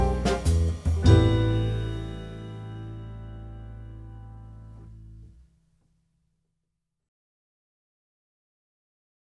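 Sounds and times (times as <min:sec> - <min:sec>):
drums: 0:00.0 - 0:03.8
blues piano in A minor: 0:00.0 - 0:05.2
bass: 0:00.0 - 0:05.9.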